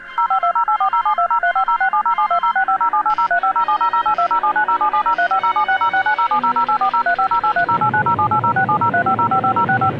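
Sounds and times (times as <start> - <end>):
DTMF touch-tone signal: 0.2 - 9.9.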